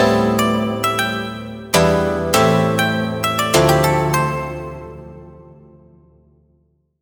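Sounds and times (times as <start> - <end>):
Phase Plant synths: 0.2 - 5.5.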